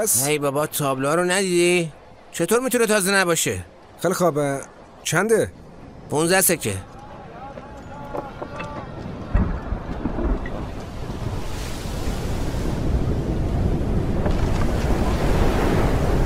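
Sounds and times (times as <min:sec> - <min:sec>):
speech: 0:00.0 - 0:06.9
strange wind blowing: 0:09.2 - 0:16.2.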